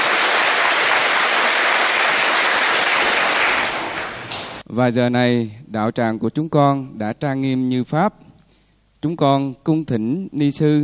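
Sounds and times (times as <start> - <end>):
audience applause: 0.0 - 4.6
speech: 4.7 - 8.3, 9.0 - 10.8.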